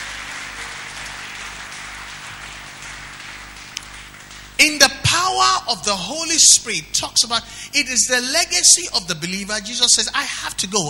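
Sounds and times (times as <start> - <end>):
audience clapping: 0.0 - 5.2
speech: 4.6 - 10.8.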